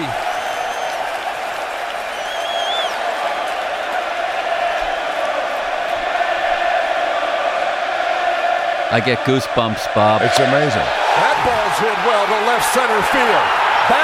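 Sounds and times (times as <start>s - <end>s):
shrill whistles from stadium crowd: 0.0s - 3.7s
packed stadium crowd cheering: 0.0s - 14.0s
speech: 8.9s - 14.0s.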